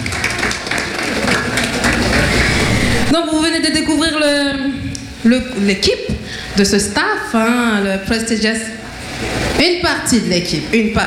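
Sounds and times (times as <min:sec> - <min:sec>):
audience applause: 0:00.0 - 0:03.1
speech: 0:03.6 - 0:08.8, 0:09.6 - 0:11.0.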